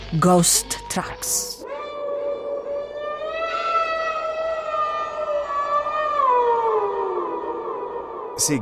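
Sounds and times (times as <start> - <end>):
speech: 0.1 - 1.6, 8.4 - 8.6
simulated coyote howl: 1.6 - 8.6.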